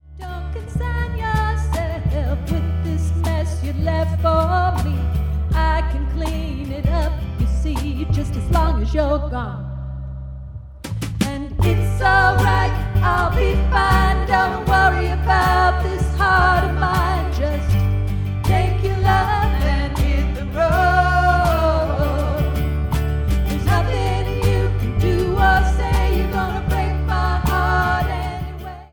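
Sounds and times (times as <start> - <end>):
acoustic snippet: 0.0 - 28.9.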